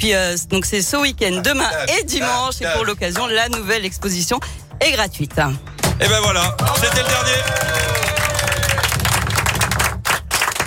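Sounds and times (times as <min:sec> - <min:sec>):
speech: 0:00.0 - 0:08.0
radio staff applauding: 0:06.1 - 0:10.6.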